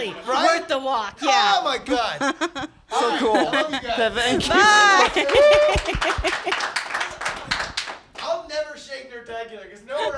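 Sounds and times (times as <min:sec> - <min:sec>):
speech: 0:00.0 - 0:06.8
laughter: 0:01.8 - 0:07.0
crowd applause: 0:04.6 - 0:08.1.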